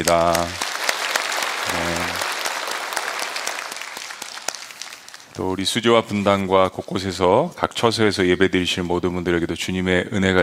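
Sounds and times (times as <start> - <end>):
speech: 0.0 - 0.7, 5.4 - 10.4
audience applause: 0.0 - 5.4.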